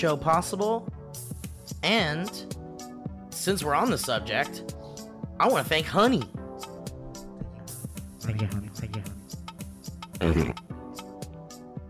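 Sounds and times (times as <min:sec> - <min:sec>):
speech: 0:00.0 - 0:02.6, 0:03.4 - 0:04.8, 0:05.4 - 0:06.4, 0:08.3 - 0:09.0, 0:10.2 - 0:10.6
person burping into a sleeping bag: 0:10.2 - 0:10.7.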